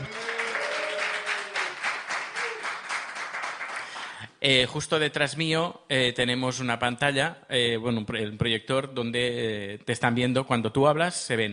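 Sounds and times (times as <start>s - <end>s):
whistles and cheers: 0.0s - 2.9s
live audience applause: 0.0s - 4.2s
speech: 4.4s - 11.5s.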